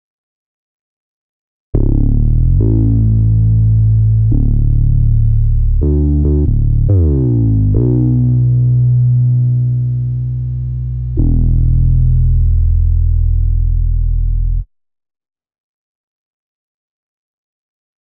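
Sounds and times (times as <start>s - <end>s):
synth bass: 1.8s - 14.7s.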